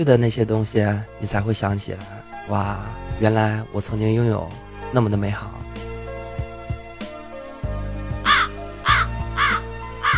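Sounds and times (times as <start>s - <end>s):
speech: 0.0s - 5.6s
music with a low pulsing beat: 5.6s - 10.1s
swan honking: 8.2s - 10.1s.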